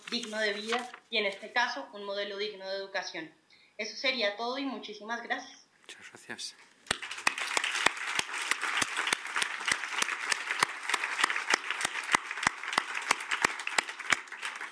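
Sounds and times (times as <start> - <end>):
speech: 0.1 - 7.0
audience applause: 6.9 - 14.7.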